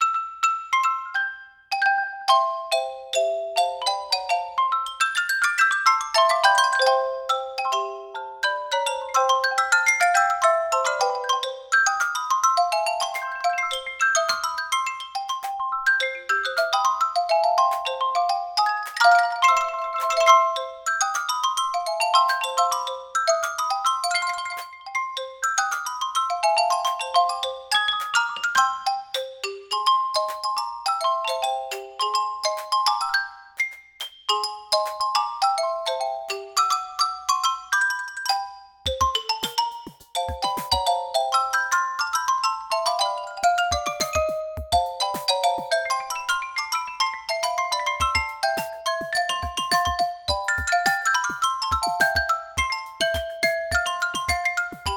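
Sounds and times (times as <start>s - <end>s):
xylophone: 0.0s - 54.9s.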